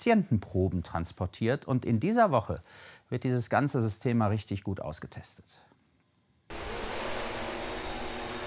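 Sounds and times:
speech: 0.0s - 5.7s
delivery drone taking off: 6.5s - 8.4s.

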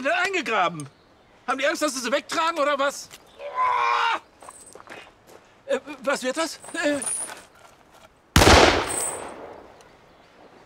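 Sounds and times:
speech: 0.0s - 4.3s, 5.7s - 7.3s
gunshot: 8.4s - 9.7s.

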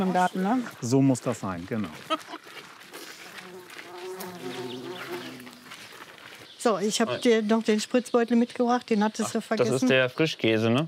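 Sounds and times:
speech: 0.0s - 2.4s, 6.6s - 10.8s
bumblebees and bees buzzing in garden: 3.3s - 5.8s.

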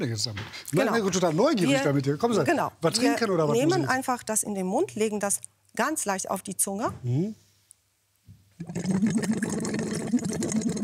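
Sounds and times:
speech: 0.0s - 7.4s, 8.6s - 10.2s
bubbling through a tube into water: 8.6s - 10.8s.

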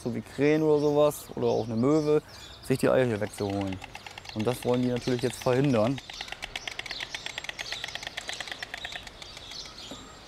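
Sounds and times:
speech: 0.0s - 6.3s
faint bird chirps: 0.4s - 10.2s
stork bill clattering: 2.7s - 10.2s.

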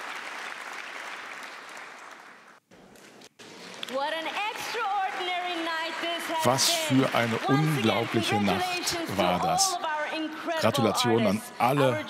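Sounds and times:
audience applause: 0.0s - 2.6s, 4.3s - 9.7s
speech: 3.9s - 4.9s, 6.3s - 12.0s.

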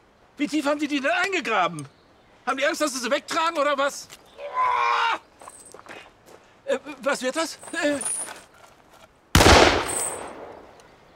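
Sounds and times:
speech: 0.4s - 5.2s, 6.7s - 8.2s
gunshot: 9.4s - 10.8s.

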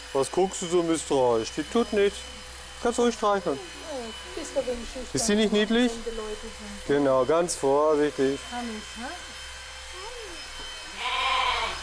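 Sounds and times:
mechanical buzzing hum: 0.0s - 11.8s
speech: 0.1s - 9.3s
lamb bleating: 10.9s - 11.8s.

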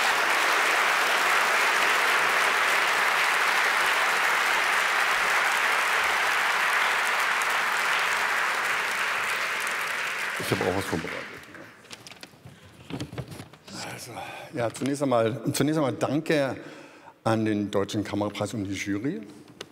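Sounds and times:
audience applause: 0.0s - 11.8s
speech: 10.4s - 11.4s, 14.5s - 19.4s.

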